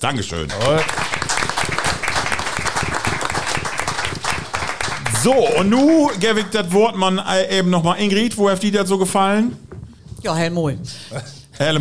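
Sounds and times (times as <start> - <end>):
speech: 0.0 - 1.1, 5.2 - 9.6, 10.2 - 11.7
audience applause: 0.5 - 7.2.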